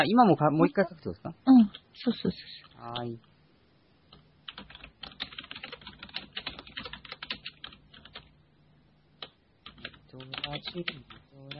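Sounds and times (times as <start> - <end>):
speech: 0.0 - 3.3, 10.2 - 11.5
typing on a computer keyboard: 4.1 - 8.3, 9.2 - 11.5.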